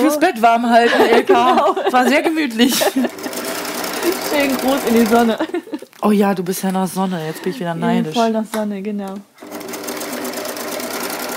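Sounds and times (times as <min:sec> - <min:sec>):
speech: 0:00.1 - 0:03.4, 0:04.0 - 0:09.5
laughter: 0:00.7 - 0:05.9
sewing machine sewing all around a bag: 0:02.8 - 0:05.5, 0:09.4 - 0:11.3.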